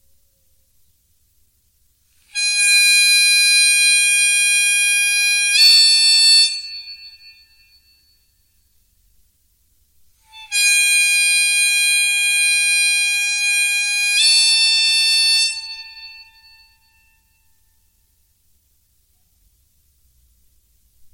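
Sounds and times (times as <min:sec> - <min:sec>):
gaita de boca bagpipe bends: 0:02.3 - 0:07.0, 0:10.2 - 0:16.6.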